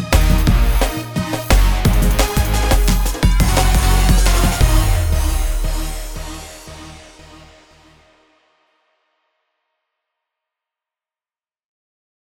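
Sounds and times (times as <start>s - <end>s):
dance music: 0.0s - 8.0s.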